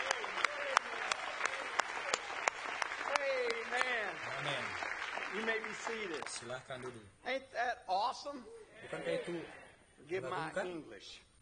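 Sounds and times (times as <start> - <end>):
audience clapping: 0.0 - 6.9
speech: 5.5 - 11.3.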